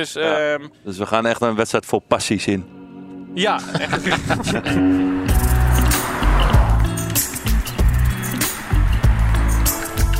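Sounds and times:
speech: 0.0s - 2.8s, 3.4s - 5.5s
laughter: 3.6s - 5.2s
car road noise on rougher asphalt just after crossing into Germany: 4.5s - 10.1s.

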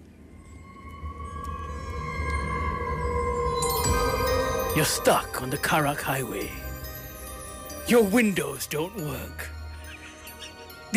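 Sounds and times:
mysterious horror theme music: 0.0s - 10.9s
speech: 4.8s - 6.6s, 7.9s - 9.5s.

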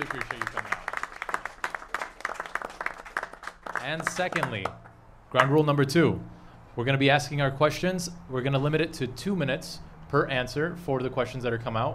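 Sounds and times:
audience applause: 0.0s - 4.8s
speech: 3.9s - 11.9s.

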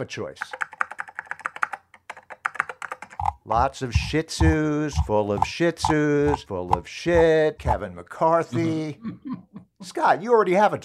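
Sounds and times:
speech: 0.0s - 0.7s, 3.5s - 10.8s
typing on a computer keyboard: 0.4s - 6.4s
laughter: 8.6s - 9.6s.

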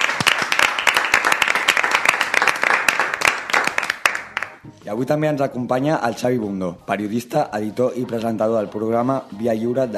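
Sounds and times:
group clapping for a radio show's regular presenters: 0.0s - 4.7s
speech: 4.8s - 9.9s.

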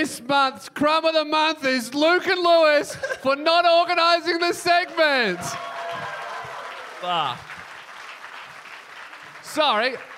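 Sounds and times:
speech: 0.0s - 5.7s, 7.0s - 7.5s, 9.5s - 10.1s
audience applause: 4.6s - 10.1s.

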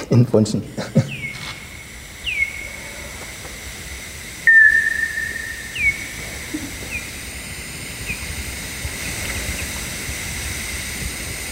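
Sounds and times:
steady hiss: 0.0s - 11.5s
speech: 0.1s - 1.0s
bat echolocation calls through a bat detector: 1.0s - 9.7s.

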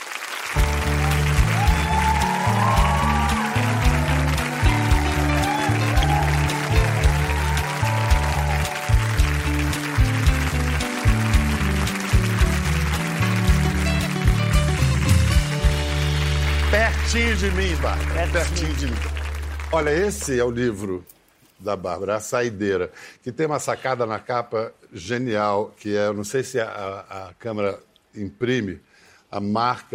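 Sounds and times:
audience applause: 0.0s - 20.8s
speech: 17.4s - 29.9s.

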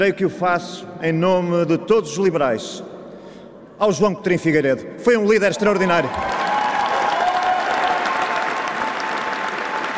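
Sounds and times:
speech: 0.0s - 2.9s, 3.8s - 6.4s
audience applause: 6.0s - 9.9s.

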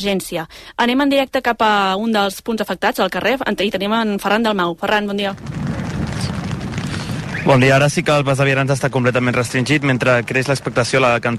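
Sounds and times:
speech: 0.0s - 5.6s, 7.4s - 11.3s
rumbling thunder: 5.3s - 11.3s.

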